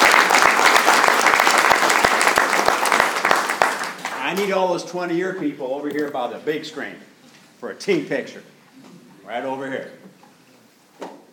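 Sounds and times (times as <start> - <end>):
round of applause: 0.0 - 4.5
speech: 4.3 - 8.5, 9.3 - 10.0.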